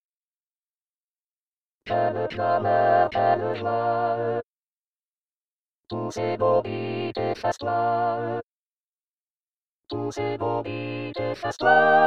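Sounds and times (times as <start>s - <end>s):
choir singing: 1.9s - 4.4s, 5.9s - 8.4s, 9.9s - 12.0s.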